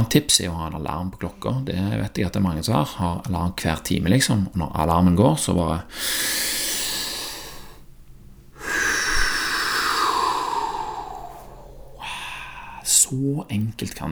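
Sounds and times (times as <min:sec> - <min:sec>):
speech: 0:00.1 - 0:06.8, 0:13.1 - 0:14.0
slow breath in and out: 0:05.9 - 0:13.4.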